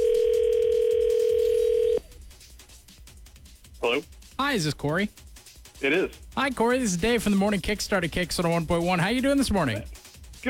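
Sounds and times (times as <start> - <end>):
telephone dial tone: 0.0 - 2.0
speech: 3.8 - 10.4.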